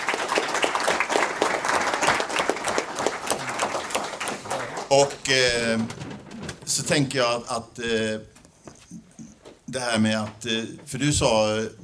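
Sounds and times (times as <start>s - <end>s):
crowd applause: 0.0s - 6.1s
speech: 4.9s - 6.1s, 6.7s - 8.3s, 9.7s - 11.8s.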